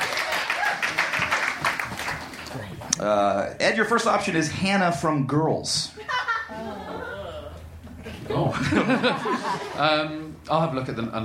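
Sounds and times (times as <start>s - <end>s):
audience clapping hands: 0.0s - 3.0s
speech: 3.0s - 6.8s, 8.3s - 11.2s
laughter: 5.9s - 10.2s.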